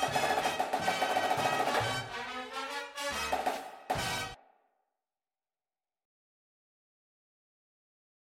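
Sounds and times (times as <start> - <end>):
snare drum: 0.0 - 4.4
music: 0.0 - 4.7.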